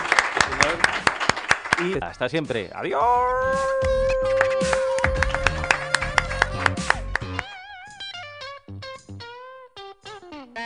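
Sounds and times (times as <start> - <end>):
audience applause: 0.0 - 2.0, 4.2 - 7.4
speech: 1.8 - 4.8.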